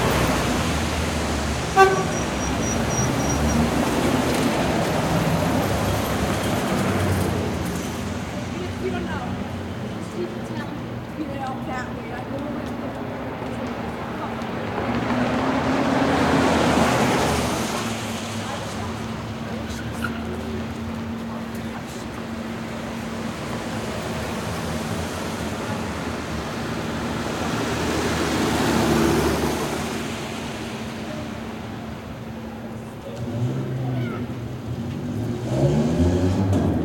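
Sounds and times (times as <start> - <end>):
medium midday city traffic: 0.0 - 36.8.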